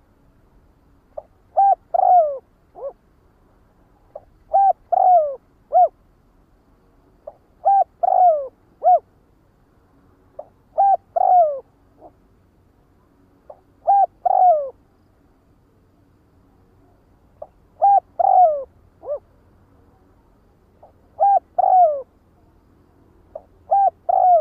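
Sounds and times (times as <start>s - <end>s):
spotted dove cooing: 1.2s - 3.0s, 4.1s - 6.0s, 7.2s - 9.1s, 10.4s - 12.2s, 13.5s - 14.8s, 17.4s - 19.3s, 20.8s - 22.1s, 23.3s - 24.3s.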